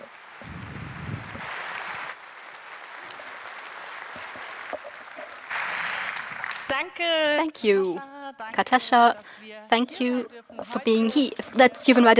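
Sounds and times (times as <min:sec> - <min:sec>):
audience applause: 0:00.0 - 0:06.9
speech: 0:06.8 - 0:12.1.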